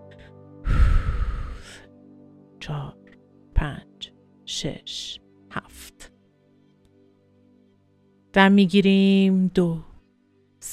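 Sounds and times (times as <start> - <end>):
slow breath during a guided meditation breathing exercise: 0.1 - 2.0
speech: 4.5 - 6.0, 8.4 - 9.9.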